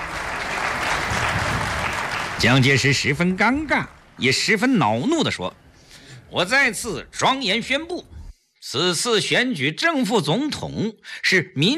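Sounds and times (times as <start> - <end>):
scattered reluctant audience applause after Chiang Kai-shek announces a presidential election: 0.0 - 3.6
speech: 2.4 - 5.6, 6.3 - 11.7.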